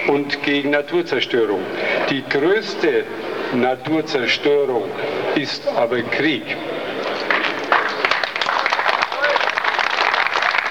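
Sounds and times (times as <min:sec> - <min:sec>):
speech: 0:00.1 - 0:06.7
audience applause: 0:07.0 - 0:10.6.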